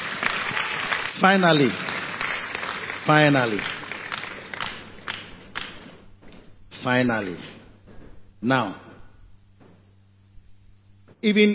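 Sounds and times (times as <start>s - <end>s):
audience clapping: 0.0s - 7.4s
speech: 1.2s - 1.9s, 3.1s - 3.8s, 6.8s - 7.6s, 8.4s - 8.8s, 11.2s - 11.5s.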